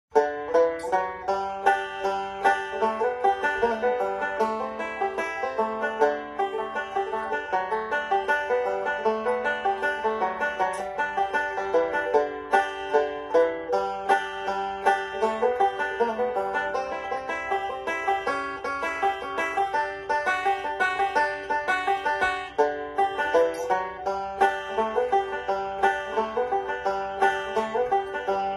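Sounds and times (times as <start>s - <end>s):
banjo: 0.1s - 28.5s.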